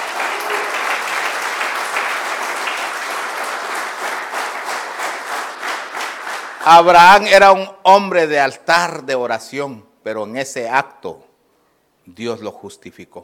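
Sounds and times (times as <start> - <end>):
audience clapping hands: 0.0 - 7.2
speech: 6.6 - 11.3, 12.0 - 13.2.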